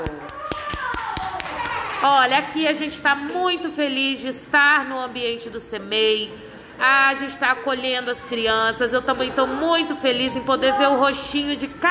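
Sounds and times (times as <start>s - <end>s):
applause, clapping hands: 0.0s - 3.7s
speech: 2.0s - 11.9s.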